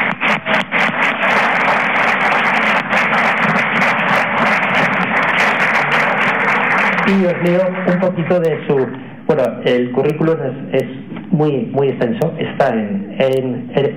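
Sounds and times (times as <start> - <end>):
crowd applauding: 0.0 - 9.0
speech: 7.1 - 13.9.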